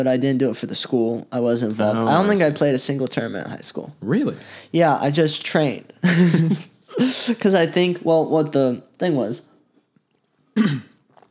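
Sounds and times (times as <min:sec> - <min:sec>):
speech: 0:00.0 - 0:09.5, 0:10.6 - 0:10.9
man burping after drinking a Monster energy drink: 0:10.6 - 0:11.1.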